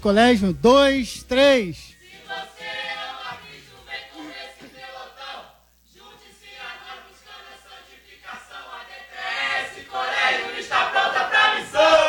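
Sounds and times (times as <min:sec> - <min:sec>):
speech: 0:00.0 - 0:02.6
audience group shouting a battle cry in unison: 0:10.1 - 0:12.0.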